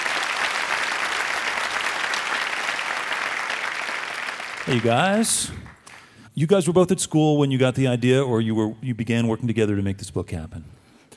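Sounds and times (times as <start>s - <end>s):
audience applause welcoming two guest book authors: 0.0s - 6.1s
speech: 4.7s - 5.7s, 6.4s - 10.8s.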